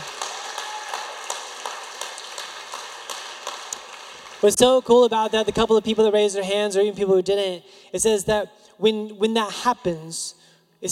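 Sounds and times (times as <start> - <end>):
crowd clapping: 0.0 - 5.0
speech: 4.4 - 10.9.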